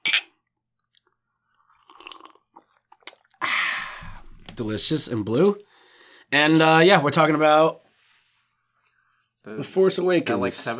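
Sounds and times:
glasses clinking: 0.0s - 0.4s
drinking milk, sips and gulps: 0.8s - 4.6s
speech: 4.6s - 5.7s, 6.3s - 7.8s, 9.4s - 10.7s.

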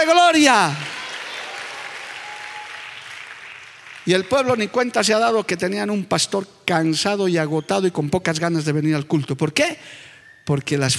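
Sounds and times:
speech: 0.0s - 0.9s, 4.0s - 10.9s
audience applause: 0.5s - 4.8s.

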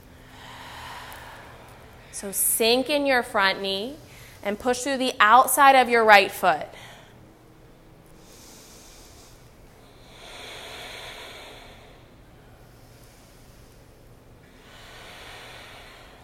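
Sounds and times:
deep slow breathing during a yoga warrior two pose: 0.0s - 2.3s, 8.1s - 16.2s
speech: 2.2s - 6.9s.

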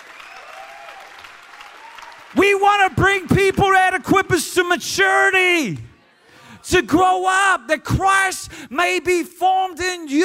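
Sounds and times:
audience applause: 0.0s - 3.2s
speech: 2.3s - 5.9s, 6.7s - 10.2s.

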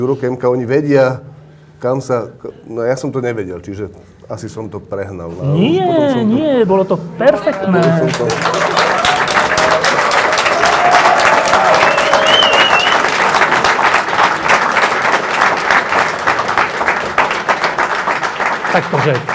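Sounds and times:
speech: 0.0s - 8.8s, 18.8s - 19.3s
audience applause: 7.4s - 19.3s.

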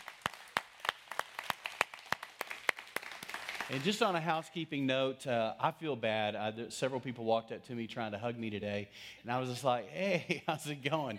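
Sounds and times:
audience hand clap welcome: 0.0s - 4.4s
speech: 3.7s - 11.1s.

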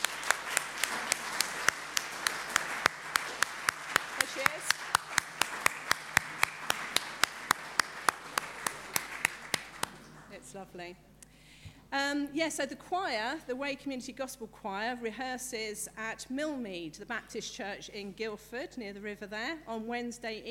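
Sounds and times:
audience clapping for a birthday: 0.0s - 10.4s
speech: 10.6s - 11.1s, 11.9s - 20.5s.

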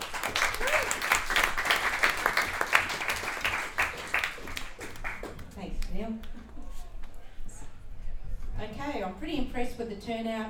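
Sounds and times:
crowd applause: 0.0s - 5.5s
speech: 8.8s - 10.4s.

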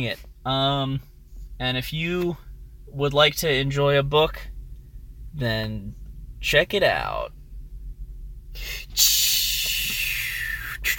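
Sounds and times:
speech: 0.0s - 4.5s, 5.3s - 7.4s, 8.6s - 9.2s
hiss of releasing air from bookmobile pulling away: 8.6s - 10.9s.

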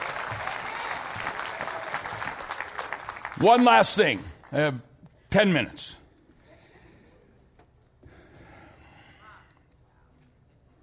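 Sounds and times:
audience clapping: 0.0s - 4.8s
speech: 3.4s - 6.0s.

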